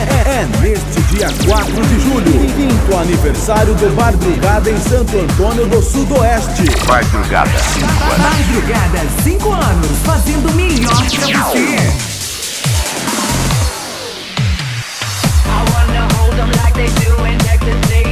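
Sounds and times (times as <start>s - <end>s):
sertanejo electro dance remix: 0.2s - 18.0s.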